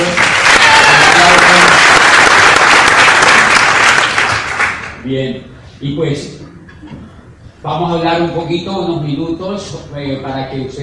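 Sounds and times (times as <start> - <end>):
audience applause: 0.0 - 5.0
speech: 5.1 - 6.4, 7.6 - 10.8.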